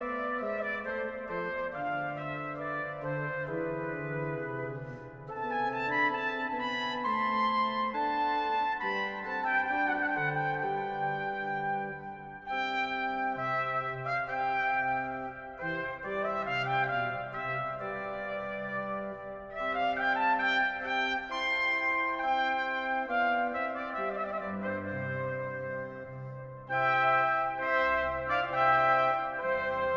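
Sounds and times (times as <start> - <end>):
trumpet instrumental: 0.0 - 29.9.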